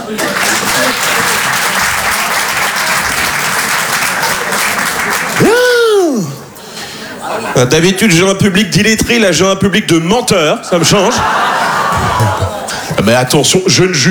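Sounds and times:
laughter: 0.0s - 1.7s, 4.1s - 8.0s, 10.6s - 14.1s
audience applause: 0.0s - 5.8s, 11.2s - 13.3s
speech: 0.1s - 1.4s, 7.6s - 14.1s.

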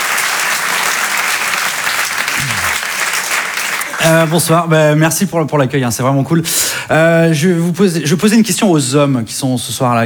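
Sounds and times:
audience applause welcoming a performer: 0.0s - 4.4s
speech: 4.0s - 10.0s.

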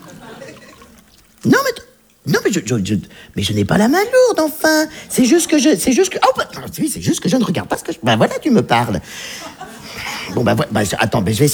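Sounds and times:
laughter: 0.0s - 1.1s, 8.2s - 11.5s
drink being poured into a glass: 0.0s - 2.3s
speech: 2.3s - 9.7s, 10.3s - 11.5s.

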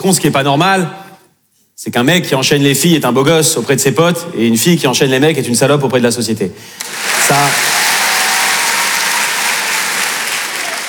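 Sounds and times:
speech: 0.0s - 1.0s, 1.8s - 7.8s
audience applause: 6.8s - 10.8s.

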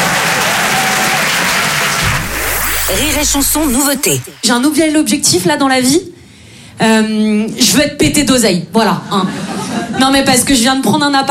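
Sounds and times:
crowd applauding: 0.0s - 4.9s
speech: 2.9s - 6.2s, 6.8s - 11.2s.

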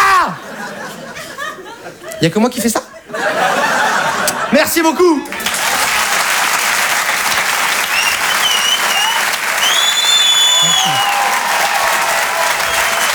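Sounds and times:
laughter: 0.2s - 13.1s
speech: 2.2s - 3.4s, 4.5s - 5.5s
audience applause: 5.3s - 13.1s
high whistles and cheers: 5.3s - 13.1s.

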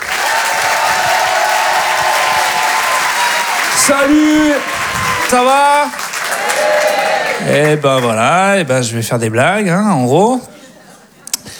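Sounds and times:
comedy club audience applauding and cheering: 0.0s - 8.8s
speech: 3.9s - 10.5s.

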